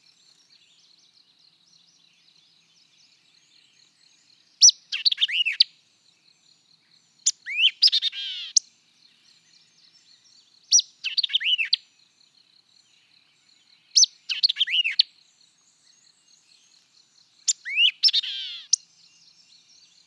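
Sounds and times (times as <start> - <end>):
white-eyed vireo song of sharp chips and slurred whistles: 4.6 - 5.7, 7.2 - 8.7, 10.1 - 11.8, 13.9 - 15.1, 15.7 - 20.0.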